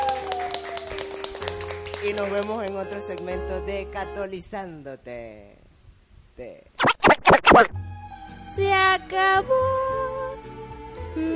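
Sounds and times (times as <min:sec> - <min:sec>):
applause: 0:00.0 - 0:03.3
speech: 0:02.0 - 0:05.6, 0:06.4 - 0:07.9, 0:08.6 - 0:10.0, 0:11.2 - 0:11.3.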